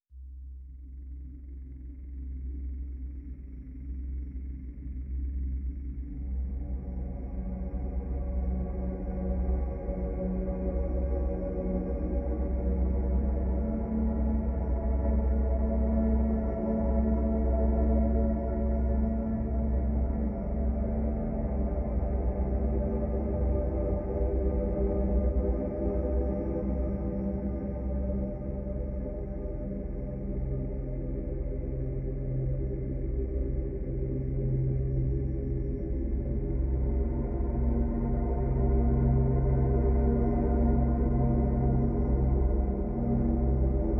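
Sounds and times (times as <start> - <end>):
drone: 0.7 - 43.9.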